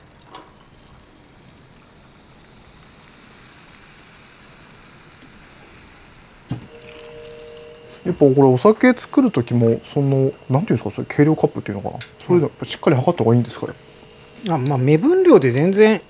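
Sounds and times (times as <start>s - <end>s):
soda water poured into a highball glass fizzing: 0.0s - 16.0s
faint sustained tone: 6.7s - 16.0s
speech: 8.0s - 16.0s.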